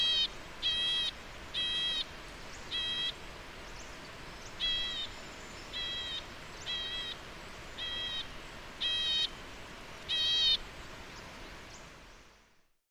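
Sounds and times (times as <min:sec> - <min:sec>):
white-cheeked nuthatch Sitta leucopsis call: 0:00.0 - 0:03.2, 0:04.5 - 0:09.3, 0:10.1 - 0:10.6.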